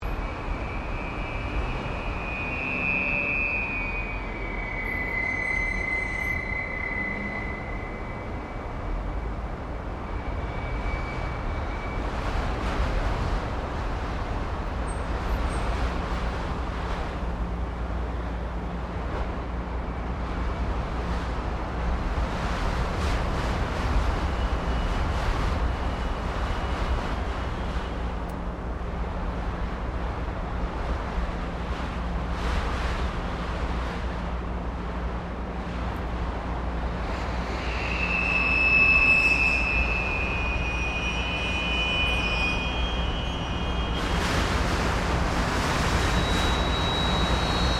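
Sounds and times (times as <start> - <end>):
wind in an apartment building: 0.0 - 47.7.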